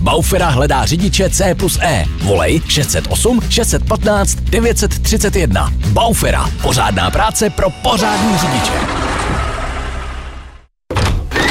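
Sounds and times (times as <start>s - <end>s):
speech: 0.1s - 9.5s
door closing in a door shop advert: 10.9s - 11.4s.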